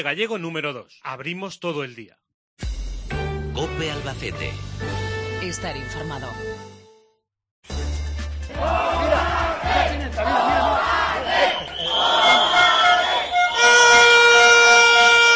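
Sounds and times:
speech: 0.0s - 2.7s, 3.6s - 6.7s
protesting workers shouting: 8.5s - 15.3s
protesters blowing whistles: 11.0s - 15.3s.

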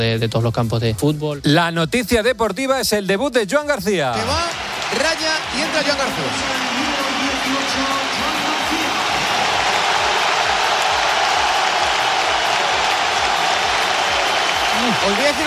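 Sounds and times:
speech: 0.0s - 8.3s, 15.0s - 15.4s
large stadium crowd applause: 4.2s - 15.4s.

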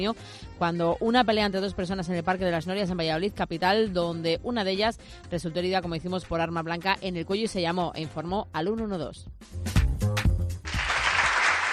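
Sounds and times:
speech: 0.0s - 9.8s
applause for the Valladolid Book Fair: 10.6s - 11.7s.

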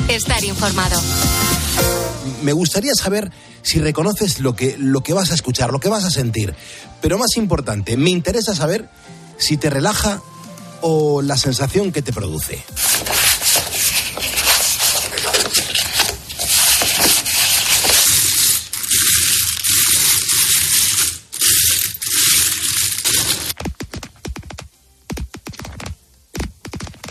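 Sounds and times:
speech: 0.1s - 13.3s
deck of cards being shuffled: 12.7s - 27.0s
coins clinking as they are moved: 12.8s - 23.6s.

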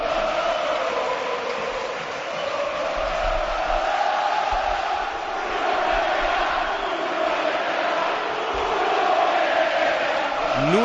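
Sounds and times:
stadium crowd chanting at Mestalla: 0.0s - 10.8s.

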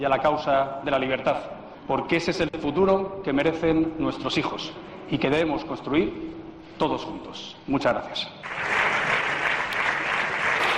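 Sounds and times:
speech: 0.0s - 8.8s
sustained applause from the PP benches in the Spanish parliament: 8.4s - 10.7s.

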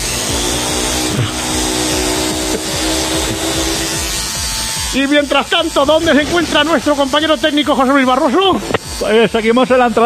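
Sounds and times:
drone hovering overhead: 0.0s - 9.4s
speech: 5.0s - 10.0s.

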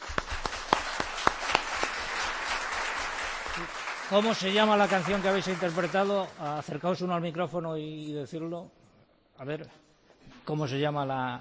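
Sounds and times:
audience hand claps: 0.0s - 6.7s
speech: 3.6s - 8.8s, 9.4s - 9.8s, 10.4s - 11.3s.

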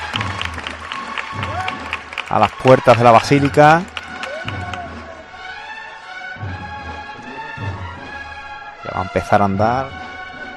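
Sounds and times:
crowd applause: 0.0s - 6.0s
speech: 2.3s - 4.6s, 9.0s - 10.0s.

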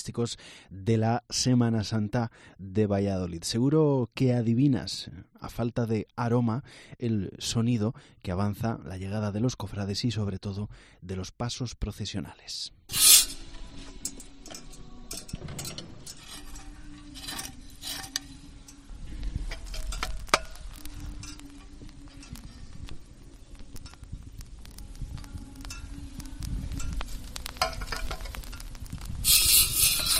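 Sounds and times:
speech: 0.0s - 13.1s
swinging censer chains clinking: 12.9s - 18.8s
charcoal and incense crackling: 12.9s - 30.1s.

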